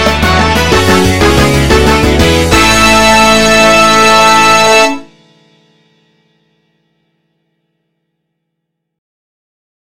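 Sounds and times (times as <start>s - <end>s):
Motown song: 0.0s - 5.2s.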